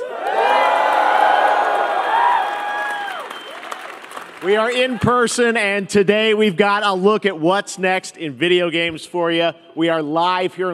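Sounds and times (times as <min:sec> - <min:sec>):
shrill whoops from fan audience: 0:00.0 - 0:03.8
live fan audience cheering at Summer Game Fest in YouTube Theater, Los Angeles: 0:00.0 - 0:05.4
speech: 0:04.4 - 0:10.7.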